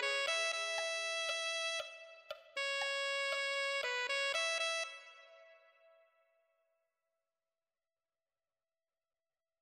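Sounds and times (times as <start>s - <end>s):
alto saxophone: 0.0s - 6.0s.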